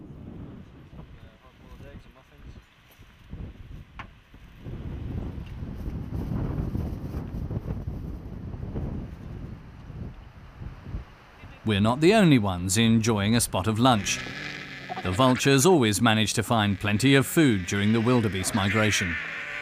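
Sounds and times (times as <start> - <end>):
gusty wind buffeting the microphone on the Tanzanian savanna: 0.0 - 11.6
speech: 11.7 - 19.4.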